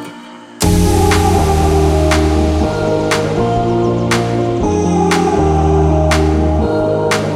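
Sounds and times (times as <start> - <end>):
beautiful tropical alarm clock melody: 0.6 - 7.2.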